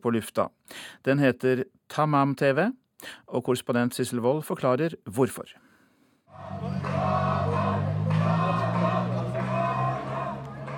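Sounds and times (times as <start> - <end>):
speech: 0.0 - 5.7
crowd of young people shouting and chanting: 6.4 - 10.7.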